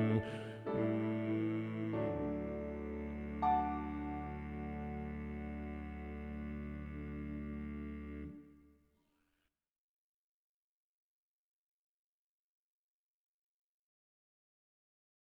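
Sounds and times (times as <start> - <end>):
bass: 0.0 - 8.4.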